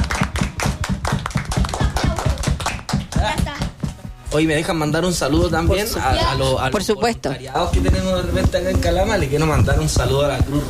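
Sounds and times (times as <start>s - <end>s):
applause: 0.0s - 3.8s
speech: 4.4s - 10.6s.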